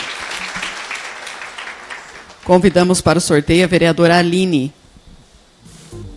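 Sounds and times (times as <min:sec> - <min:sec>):
round of applause: 0:00.0 - 0:02.5
speech: 0:02.4 - 0:04.8.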